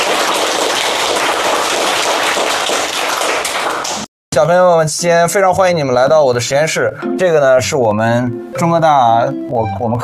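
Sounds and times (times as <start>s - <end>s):
applause: 0.0s - 4.1s
speech: 4.4s - 10.0s.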